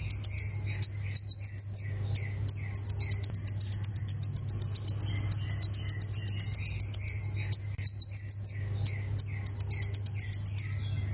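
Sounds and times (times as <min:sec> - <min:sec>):
low hum: 0:00.0 - 0:11.1
plain prinia singing: 0:00.0 - 0:11.1.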